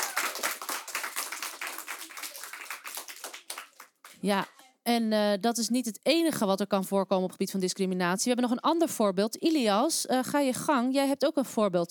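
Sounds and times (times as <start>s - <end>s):
audience applause: 0.0s - 4.2s
speech: 4.2s - 11.8s.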